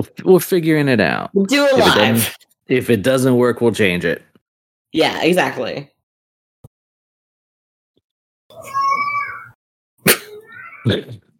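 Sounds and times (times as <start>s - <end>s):
speech: 0.1s - 4.3s, 4.9s - 5.9s, 10.8s - 11.2s
cat meowing loudly and plaintively: 8.5s - 9.6s.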